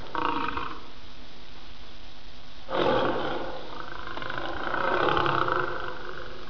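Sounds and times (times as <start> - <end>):
lion: 0.0 - 0.9, 2.7 - 6.4.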